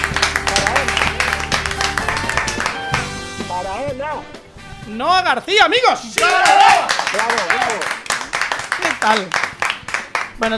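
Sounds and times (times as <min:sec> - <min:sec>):
excited voices calling out and cheering: 0:00.0 - 0:03.0, 0:06.1 - 0:10.2
audience clapping at a veterinary congress: 0:00.0 - 0:03.2, 0:06.2 - 0:10.5
speech: 0:04.9 - 0:08.0, 0:08.8 - 0:09.4, 0:10.4 - 0:10.5.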